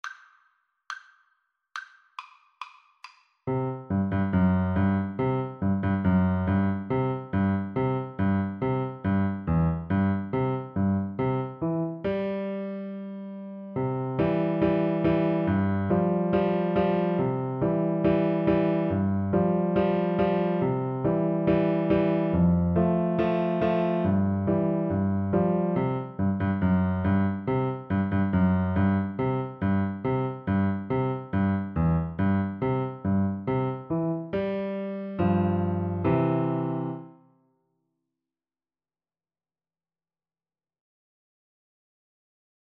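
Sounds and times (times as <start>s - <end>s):
piano duet: 3.5s - 37.2s.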